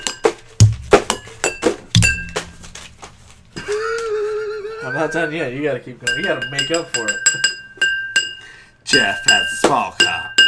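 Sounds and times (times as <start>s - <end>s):
drum outro: 0.4s - 3.3s
laughter: 3.6s - 5.3s
speech: 5.0s - 7.4s, 8.9s - 10.4s.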